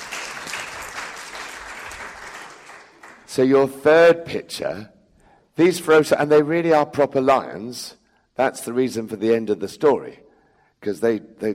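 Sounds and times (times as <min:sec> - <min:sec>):
applause: 0:00.0 - 0:03.4
speech: 0:03.4 - 0:05.0, 0:05.6 - 0:10.2, 0:10.8 - 0:11.5.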